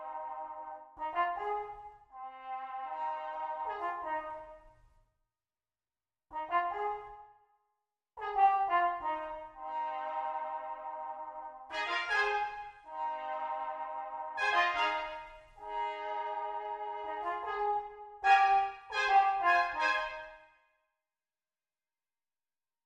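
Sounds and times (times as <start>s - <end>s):
clean brass instruments playing: 0.0s - 4.6s, 6.4s - 7.1s, 8.2s - 20.5s.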